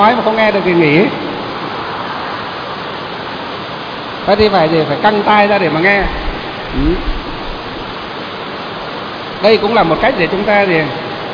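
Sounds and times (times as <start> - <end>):
speech: 0.0 - 1.2, 4.2 - 7.2, 9.4 - 11.0
heavy rain: 0.1 - 11.3.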